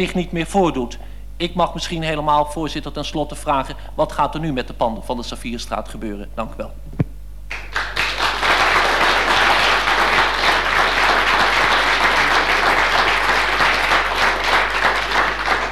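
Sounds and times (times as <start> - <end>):
speech: 0.0 - 7.0
applause: 7.5 - 15.7.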